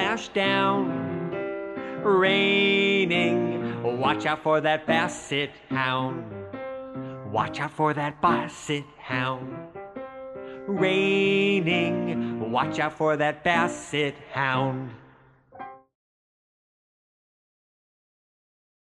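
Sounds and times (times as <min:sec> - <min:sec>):
raining vocals: 0:00.0 - 0:09.8, 0:10.4 - 0:15.4.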